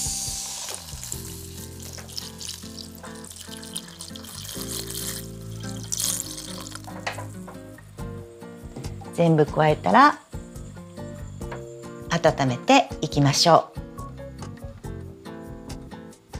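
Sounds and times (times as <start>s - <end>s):
diluted noodle broth pouring into a hot pan: 0.0s - 7.3s
continuous sizzling hiss: 0.0s - 13.4s
speech: 9.2s - 10.2s, 12.2s - 13.8s.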